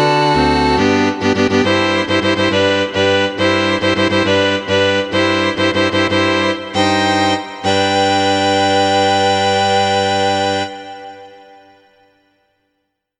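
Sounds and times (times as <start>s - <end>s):
string quartet playing: 0.4s - 9.8s.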